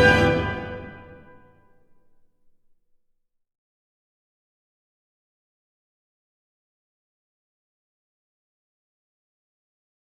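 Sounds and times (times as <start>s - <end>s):
national anthem: 0.0s - 1.6s.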